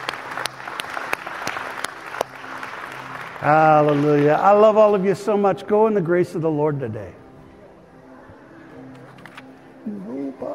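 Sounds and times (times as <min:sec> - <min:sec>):
audience clapping: 0:00.0 - 0:05.5
speech: 0:03.4 - 0:07.2.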